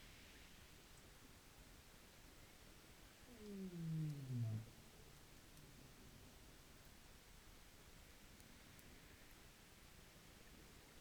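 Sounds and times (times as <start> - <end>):
quiet hissing background: 0.0 - 10.9
rorqual call: 3.3 - 4.8.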